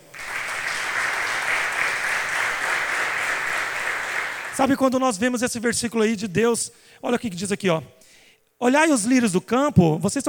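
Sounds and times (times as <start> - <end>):
crowd applause: 0.0 - 4.6
speech: 4.6 - 8.0, 8.6 - 10.2.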